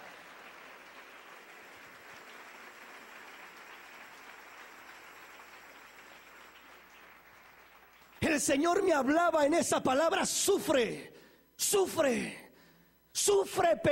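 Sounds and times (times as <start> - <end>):
crowd applauding: 0.0 - 8.8
speech: 8.3 - 12.4, 13.2 - 13.9.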